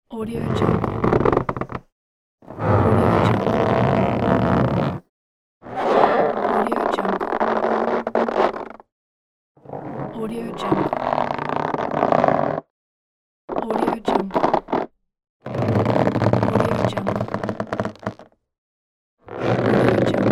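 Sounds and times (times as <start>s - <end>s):
balloons squeezed and stretched: 0.4s - 1.8s, 2.5s - 5.0s, 5.6s - 8.8s, 9.7s - 12.7s, 13.5s - 14.9s, 15.5s - 18.4s, 19.3s - 20.3s.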